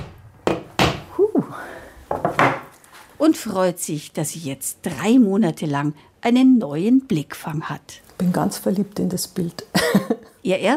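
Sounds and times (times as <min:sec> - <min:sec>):
hammer knocking a nail into a wall: 0:00.0 - 0:01.1
speech: 0:03.2 - 0:10.7.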